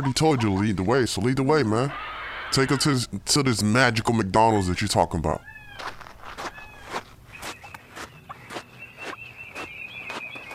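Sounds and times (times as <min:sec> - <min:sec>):
speech: 0:00.0 - 0:06.0
footsteps of people walking: 0:05.4 - 0:10.5.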